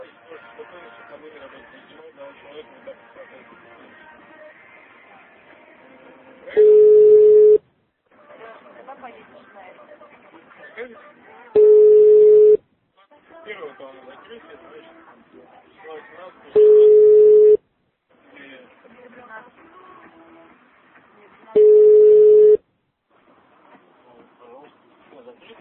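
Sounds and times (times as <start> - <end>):
telephone line tones: 6.5 - 7.6, 11.6 - 12.6, 16.6 - 17.6, 21.6 - 22.6.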